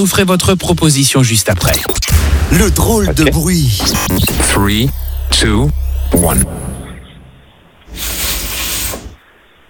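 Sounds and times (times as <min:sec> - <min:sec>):
speech: 0:00.0 - 0:06.7
steam clothes steamer hissing: 0:07.9 - 0:09.2.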